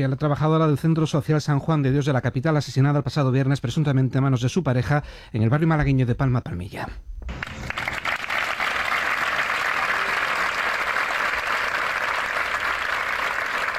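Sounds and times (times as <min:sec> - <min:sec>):
speech: 0:00.0 - 0:07.4
crowd applauding ending a minute of silence: 0:07.3 - 0:13.7.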